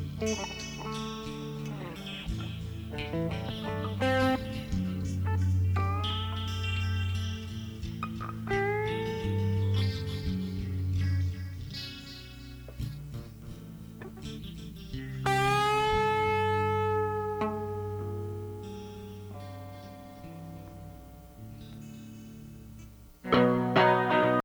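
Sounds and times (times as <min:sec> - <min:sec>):
guitar solo with feedback: 0:00.0 - 0:24.4.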